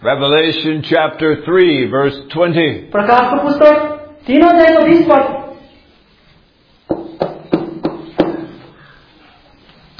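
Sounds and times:
speech: 0:00.0 - 0:05.4
firm knocking on a wooden door: 0:06.9 - 0:08.6.

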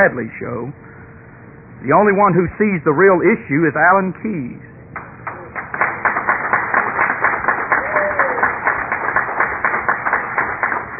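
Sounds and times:
speech: 0:00.0 - 0:00.9, 0:01.8 - 0:04.7
audience clapping: 0:05.0 - 0:10.9.

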